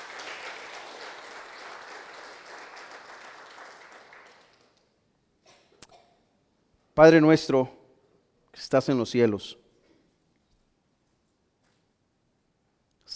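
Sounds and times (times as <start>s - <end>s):
audience applauding: 0.0s - 4.9s
speech: 7.0s - 7.8s, 8.7s - 9.6s.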